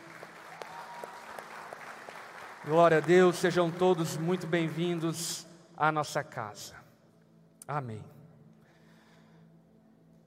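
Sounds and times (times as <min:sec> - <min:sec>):
church audience applause: 0:00.0 - 0:05.2
speech: 0:02.6 - 0:06.8, 0:07.7 - 0:08.2.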